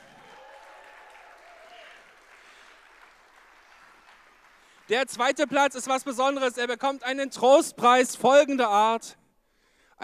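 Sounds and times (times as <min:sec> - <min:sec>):
whoops and cheering: 0:00.0 - 0:02.2
audience clapping: 0:00.0 - 0:06.5
speech: 0:04.9 - 0:09.2.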